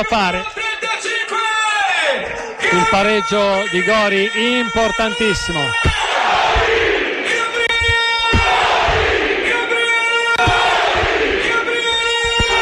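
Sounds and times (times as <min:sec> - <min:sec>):
speech: 0:00.0 - 0:00.6, 0:02.7 - 0:05.9
stadium fans of the curva sud cheering a goal: 0:00.6 - 0:12.6.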